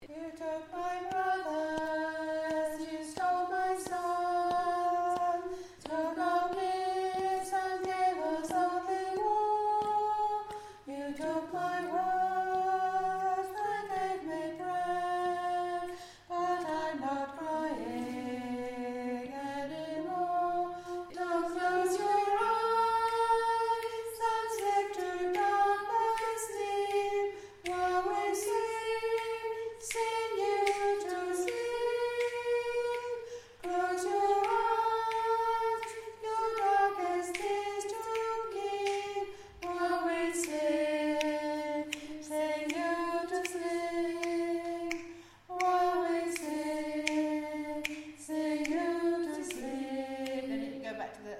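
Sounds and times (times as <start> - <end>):
soprano singing: 0.0 - 51.2.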